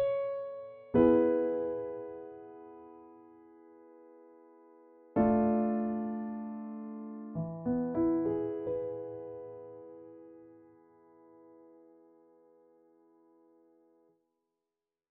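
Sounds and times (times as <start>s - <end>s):
piano cover: 0.0s - 11.8s.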